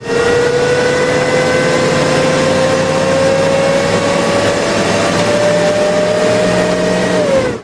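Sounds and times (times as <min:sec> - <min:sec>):
vehicles cruising: 0:00.0 - 0:07.6.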